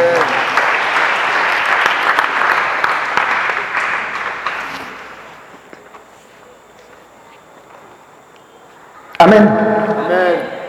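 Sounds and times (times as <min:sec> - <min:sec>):
congregation applauding to acclaim God: 0:00.0 - 0:05.6
speech: 0:09.4 - 0:09.6.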